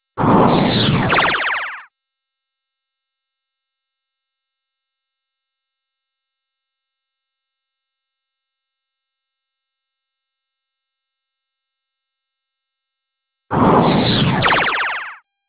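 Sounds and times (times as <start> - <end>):
cannon: 0.2 - 1.8, 13.5 - 15.2.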